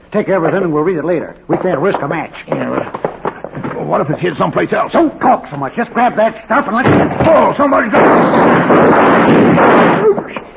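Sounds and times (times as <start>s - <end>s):
speech: 0.1s - 10.5s
gunshot in an old-time radio western drama: 6.8s - 10.4s.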